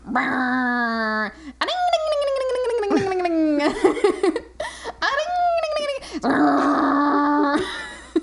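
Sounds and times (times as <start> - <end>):
voice imitating a moped engine: 0.0 - 3.7, 5.0 - 7.7
speech: 0.2 - 1.5.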